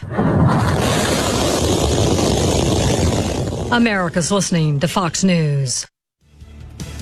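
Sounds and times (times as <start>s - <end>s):
SpaceX Starship rocket launch: 0.0s - 4.1s
speech: 3.7s - 5.9s.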